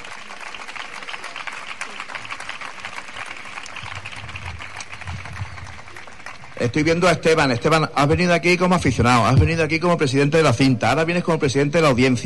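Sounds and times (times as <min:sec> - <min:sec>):
crowd ovation applause: 0:00.0 - 0:07.6
speech: 0:06.6 - 0:12.2.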